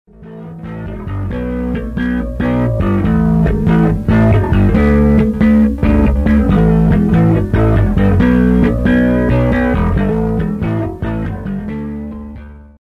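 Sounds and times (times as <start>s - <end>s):
Dean ten-string guitar: 0.1s - 12.8s.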